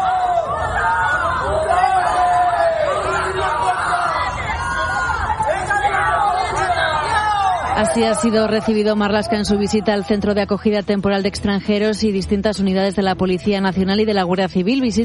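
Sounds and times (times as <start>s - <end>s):
crowd shouting traitor at a minister: 0.0s - 10.6s
speech: 7.8s - 15.0s.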